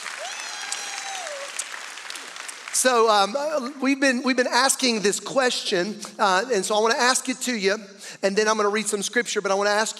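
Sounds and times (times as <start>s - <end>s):
audience clapping: 0.0s - 3.7s
speech: 2.8s - 9.9s.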